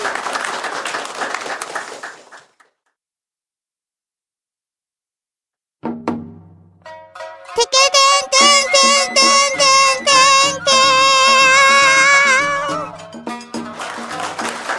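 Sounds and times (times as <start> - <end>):
applause, hands clapping: 0.0 - 3.0, 7.6 - 14.7.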